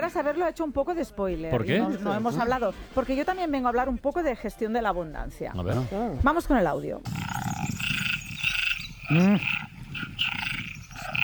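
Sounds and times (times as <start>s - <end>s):
speech: 0.1s - 7.4s, 9.1s - 9.7s
dense chorus of tree frogs croaking: 7.1s - 11.2s.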